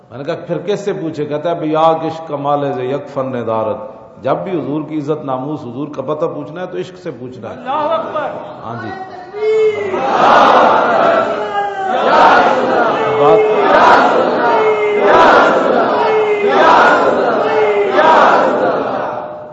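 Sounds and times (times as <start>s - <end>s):
speech: 0.1s - 15.8s
crowd chanting religious slogans in unison: 9.6s - 19.5s.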